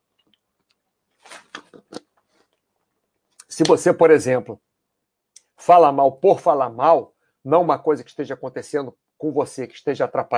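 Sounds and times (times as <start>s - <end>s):
sipping a gulp of water: 1.2s - 2.2s
speech: 3.6s - 4.6s, 5.6s - 10.3s.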